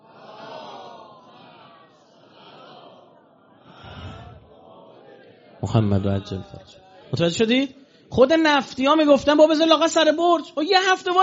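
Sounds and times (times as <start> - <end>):
crowd reciting a salawat together at a religious talk: 0.0 - 7.2
speech: 5.6 - 11.2.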